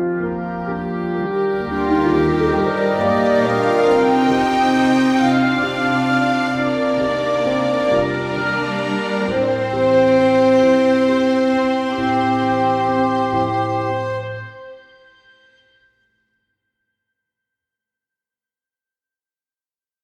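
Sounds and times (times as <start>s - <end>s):
orchestral music: 0.0s - 15.4s.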